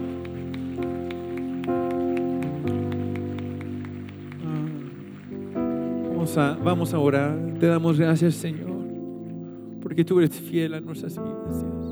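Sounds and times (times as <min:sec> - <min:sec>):
audience applause: 0:00.0 - 0:09.0
held musical chords and tones: 0:00.0 - 0:11.8
speech: 0:06.3 - 0:08.7, 0:10.0 - 0:11.8.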